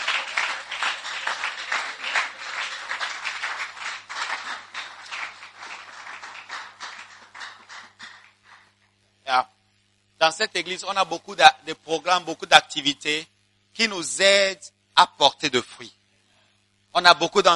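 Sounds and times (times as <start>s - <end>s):
church congregation applauding during worship: 0.0s - 8.9s
speech: 9.3s - 9.5s, 10.2s - 16.0s, 16.9s - 17.5s.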